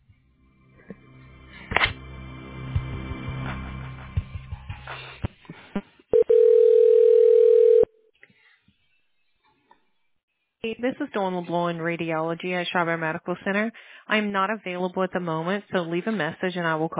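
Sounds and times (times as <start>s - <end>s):
telephone ringing: 6.2s - 7.9s
speech: 10.8s - 16.9s.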